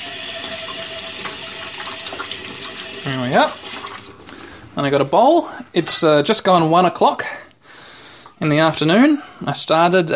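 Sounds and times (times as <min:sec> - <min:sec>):
running tap water: 0:00.0 - 0:05.7
speech: 0:03.0 - 0:03.7, 0:04.8 - 0:07.4, 0:08.4 - 0:10.1.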